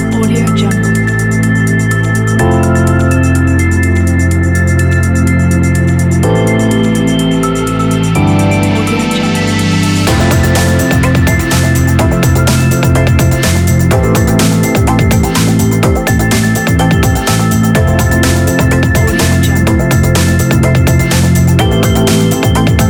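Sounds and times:
ambient atmospheric breakbeat music: 0.0 - 22.8.

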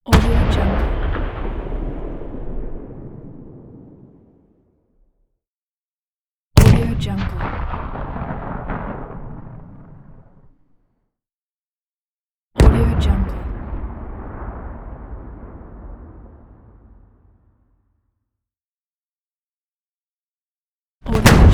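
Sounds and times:
tank cannon shot: 0.1 - 4.4, 6.6 - 10.6, 12.6 - 17.5, 21.1 - 21.5.

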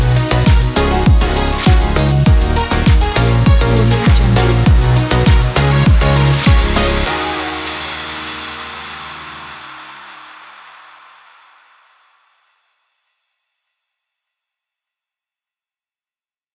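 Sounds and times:
positive pop dance music: 0.0 - 11.0.

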